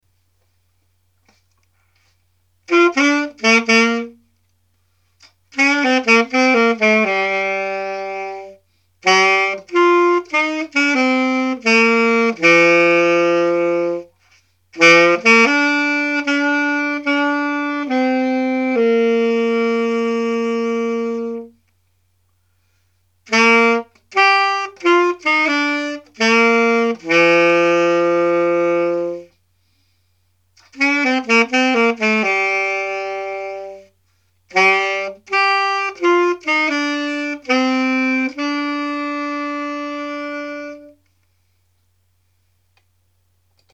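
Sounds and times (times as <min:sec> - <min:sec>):
saxophone: 0:01.2 - 0:41.7.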